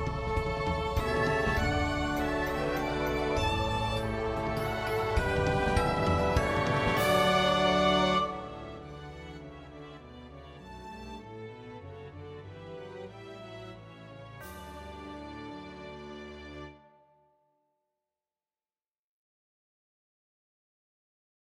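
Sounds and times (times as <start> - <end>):
violin melody: 0.0 - 17.0.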